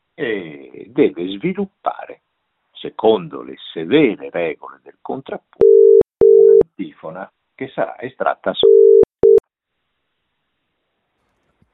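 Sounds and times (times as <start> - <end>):
speech: 0.2 - 2.2, 2.8 - 6.0, 6.8 - 9.1
telephone busy-tone beep from a failed call attempt: 5.6 - 6.6, 8.6 - 9.4.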